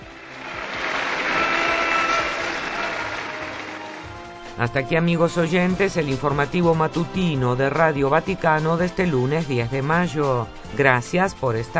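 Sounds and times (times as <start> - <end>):
crowd applause: 0.0 - 4.4
speech: 4.6 - 11.7.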